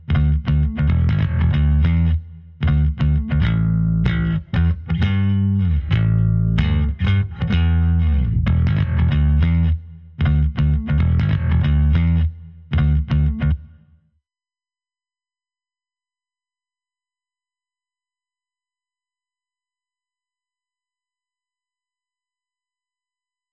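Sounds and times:
bass: 0:00.0 - 0:14.0.

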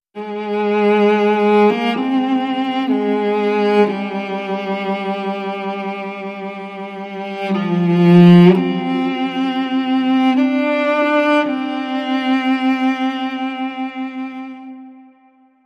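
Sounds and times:
cello: 0:00.2 - 0:15.6.

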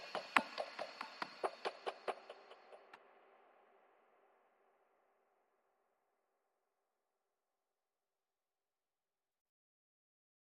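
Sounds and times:
drums: 0:00.0 - 0:03.0.

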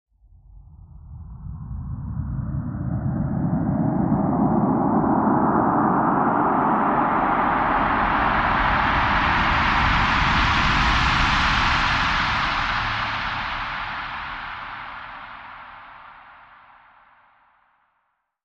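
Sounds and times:
rising sound: 0:00.9 - 0:15.3.

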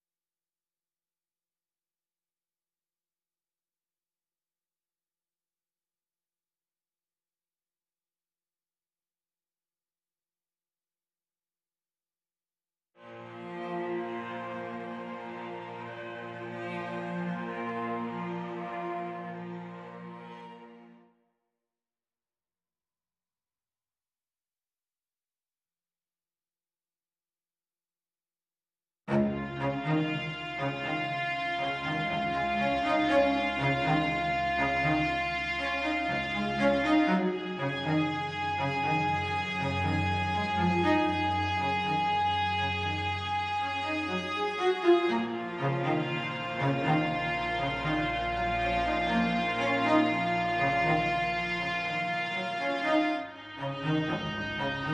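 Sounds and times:
strings: 0:13.0 - 0:21.0, 0:29.1 - 0:54.9.

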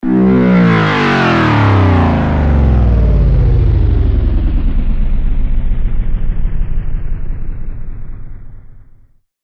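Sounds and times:
power-down sound of a pulled plug: 0:00.0 - 0:08.6.

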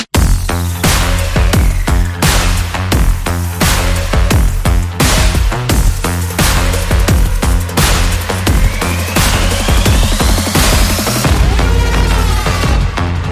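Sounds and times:
synth music without lead synths: 0:00.2 - 0:13.3.

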